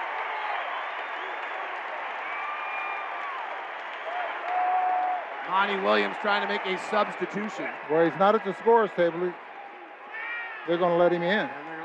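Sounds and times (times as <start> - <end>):
arena crowd cheering: 0.0 - 11.8
speech: 5.5 - 9.4, 10.6 - 11.6.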